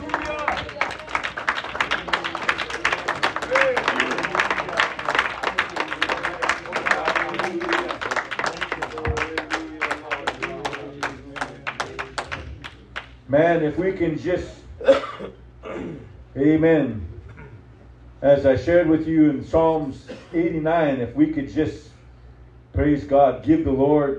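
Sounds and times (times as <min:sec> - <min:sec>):
audience hand clapping: 0:00.0 - 0:13.2
speech: 0:13.4 - 0:15.0, 0:16.4 - 0:17.1, 0:18.2 - 0:21.8, 0:22.8 - 0:24.1.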